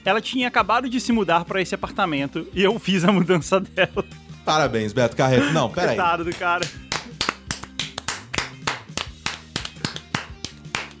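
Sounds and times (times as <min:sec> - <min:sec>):
speech: 0:00.0 - 0:06.8
small group clapping hands: 0:06.0 - 0:10.9.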